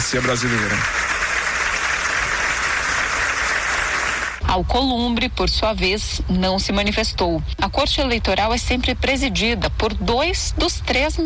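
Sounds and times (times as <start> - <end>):
applause from a large crowd at ceremony: 0.0 - 4.4
speech: 0.1 - 1.1, 4.5 - 11.2.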